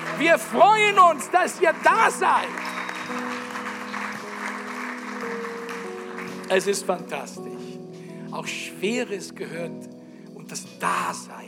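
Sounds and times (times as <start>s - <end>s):
audience applauding: 0.0s - 7.1s
speech: 0.2s - 3.2s, 6.5s - 7.6s, 8.3s - 9.9s, 10.5s - 11.4s.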